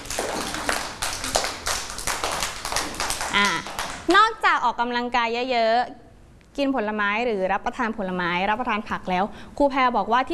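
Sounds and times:
children clapping hands: 0:00.0 - 0:04.1
speech: 0:03.4 - 0:06.0, 0:06.6 - 0:10.3.

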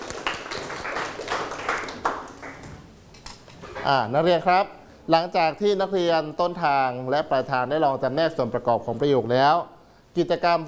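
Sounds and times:
classroom clapping: 0:00.0 - 0:02.8
speech: 0:03.9 - 0:10.6.

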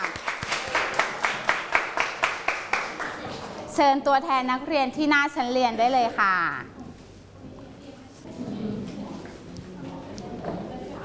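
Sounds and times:
classroom applause for presenting students: 0:00.0 - 0:03.6
speech: 0:03.8 - 0:06.8.

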